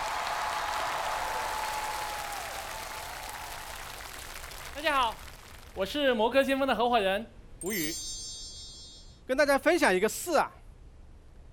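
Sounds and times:
audience applause welcoming a guest: 0:00.0 - 0:05.8
speech: 0:04.8 - 0:05.2, 0:05.8 - 0:08.1, 0:09.3 - 0:10.6.

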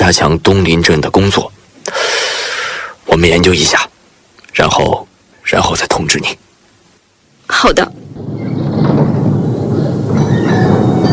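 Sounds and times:
speech: 0:00.1 - 0:01.6, 0:03.2 - 0:03.9, 0:04.6 - 0:06.4, 0:07.5 - 0:08.6
tram running on rails on Xinjing street: 0:08.4 - 0:11.1.

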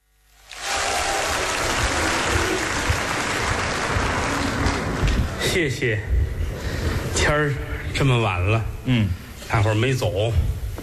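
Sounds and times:
audience applause: 0:00.4 - 0:05.5
speech: 0:05.5 - 0:06.2, 0:07.3 - 0:10.5.

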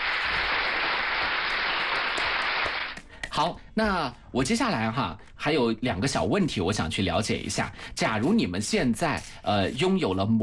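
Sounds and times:
audience applause: 0:00.0 - 0:03.0
speech: 0:03.4 - 0:10.4.

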